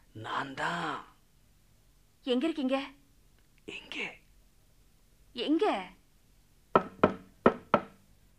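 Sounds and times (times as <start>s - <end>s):
speech: 0.2s - 1.1s, 2.2s - 3.0s, 3.7s - 4.2s, 5.4s - 6.0s
knocking on a door: 6.7s - 8.0s.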